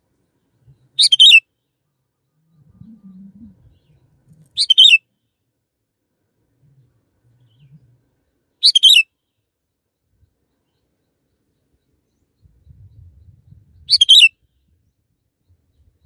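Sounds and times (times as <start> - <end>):
canary chirping: 1.0 - 1.4, 4.6 - 5.0, 8.6 - 9.0.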